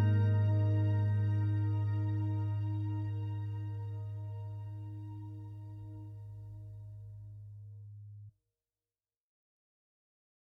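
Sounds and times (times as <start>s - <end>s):
acoustic TV score music: 0.0s - 7.4s.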